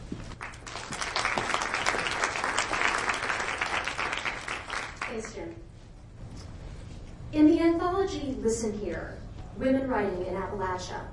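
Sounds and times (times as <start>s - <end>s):
audience clapping at a university MFA program reading: 0.0s - 5.4s
speech: 5.2s - 5.7s, 7.3s - 11.1s.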